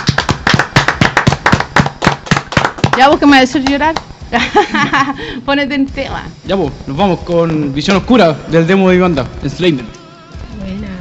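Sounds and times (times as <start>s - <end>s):
hand clapping in tribute to a departed rock musician: 0.0s - 4.1s
speech: 3.0s - 10.0s
laughter: 4.4s - 5.2s.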